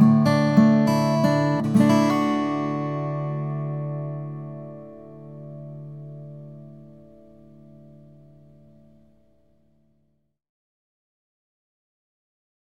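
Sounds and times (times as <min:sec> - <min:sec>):
guitar: 0:00.0 - 0:10.0.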